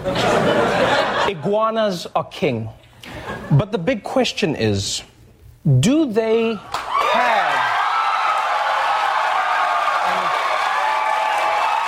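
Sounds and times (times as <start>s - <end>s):
laughter: 0.0s - 1.5s
speech: 1.4s - 6.8s
studio audience cheering and applauding: 6.6s - 11.8s.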